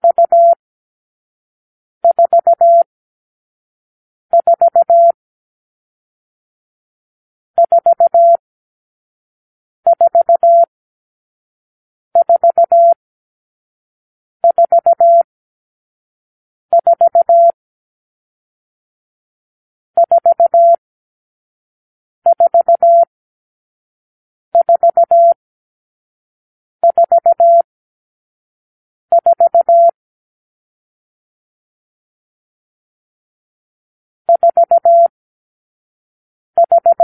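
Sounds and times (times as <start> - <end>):
morse code beeps: 0.0 - 0.6, 2.0 - 2.9, 4.3 - 5.2, 7.6 - 8.4, 9.9 - 10.7, 12.2 - 13.0, 14.4 - 15.3, 16.7 - 17.6, 20.0 - 20.8, 22.3 - 23.1, 24.6 - 25.4, 26.8 - 27.7, 29.1 - 30.0, 34.3 - 35.1, 36.6 - 37.0.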